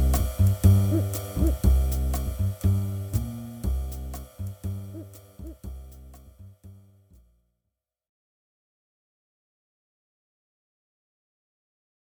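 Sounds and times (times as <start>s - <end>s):
backing music: 0.0s - 6.8s.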